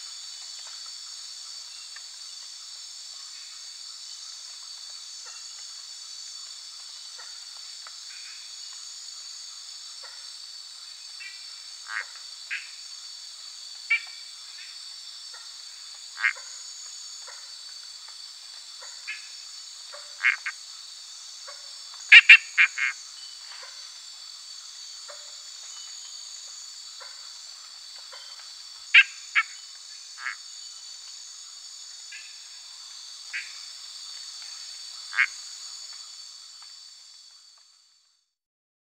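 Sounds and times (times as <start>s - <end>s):
Dent's treefrog calls: 11.2s - 12.8s, 13.9s - 17.5s, 18.8s - 20.8s, 21.4s - 23.9s, 28.0s - 30.6s, 33.2s - 33.7s, 34.9s - 35.8s
high insect buzzing: 22.0s - 23.0s.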